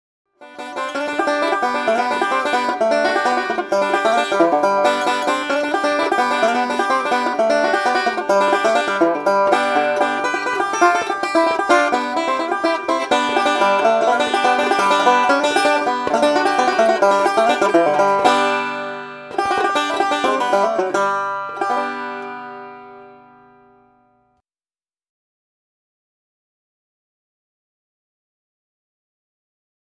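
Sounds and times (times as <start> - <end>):
banjo: 0.4 - 24.0.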